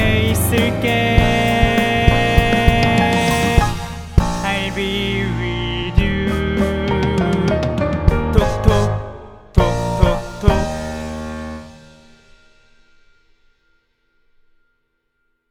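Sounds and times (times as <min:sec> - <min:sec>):
tenor singing: 0:00.0 - 0:11.8.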